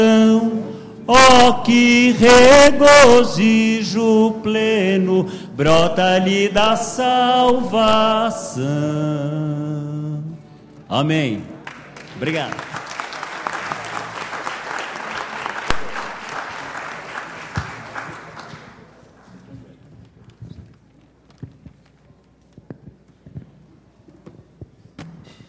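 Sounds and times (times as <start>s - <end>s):
faint noise: 0.0s - 25.4s
speech: 1.1s - 10.2s, 10.9s - 11.5s, 12.2s - 12.8s
crowd applause: 11.6s - 19.1s.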